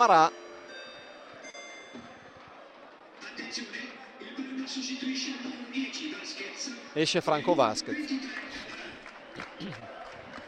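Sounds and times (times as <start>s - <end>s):
speech: 0.0s - 0.4s, 4.7s - 8.7s, 9.6s - 9.9s
scattered applause from stadium stands: 2.1s - 5.0s, 7.3s - 10.4s.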